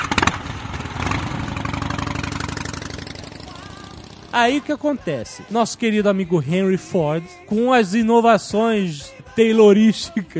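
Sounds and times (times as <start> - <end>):
Harley-Davidson motorcycle engine revving and idling: 0.0 - 5.5
speech: 4.4 - 10.3.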